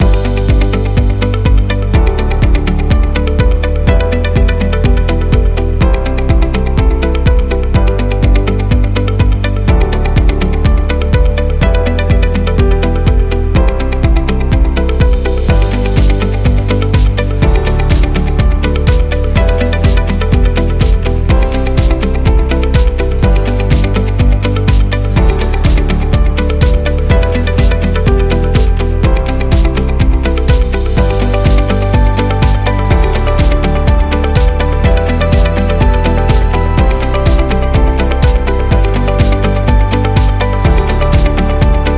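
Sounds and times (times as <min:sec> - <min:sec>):
corporate music loop: 0:00.0 - 0:41.9.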